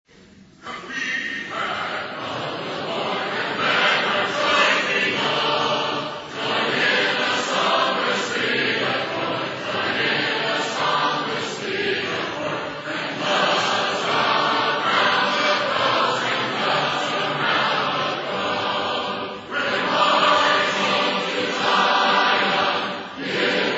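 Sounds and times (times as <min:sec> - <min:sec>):
a cappella hymn: 0:00.6 - 0:23.7.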